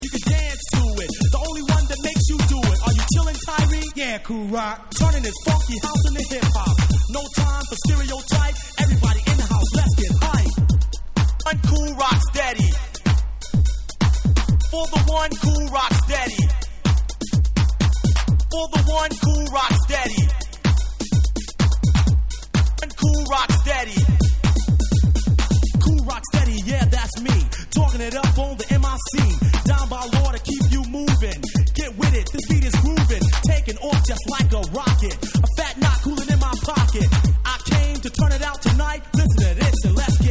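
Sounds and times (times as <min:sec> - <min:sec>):
hip house music: 0:00.0 - 0:40.2.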